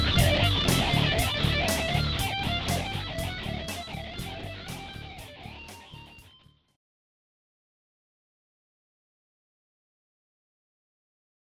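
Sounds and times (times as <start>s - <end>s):
guitar in Drop D tuning: 0.0s - 6.7s.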